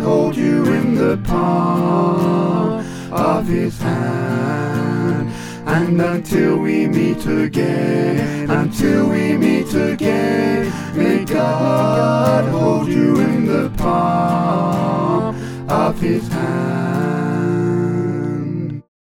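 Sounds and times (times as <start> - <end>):
SATB choir singing: 0.0 - 18.9.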